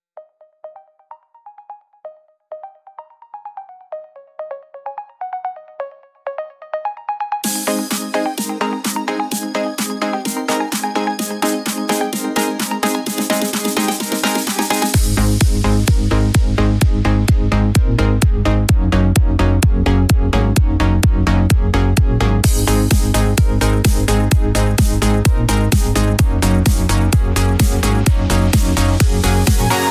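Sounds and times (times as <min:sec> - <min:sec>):
raid dungeon music: 0:07.3 - 0:29.8.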